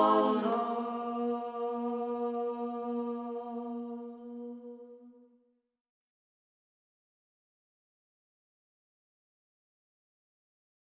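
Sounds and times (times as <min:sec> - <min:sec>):
folk song singing from Imereti: 0:00.0 - 0:05.0.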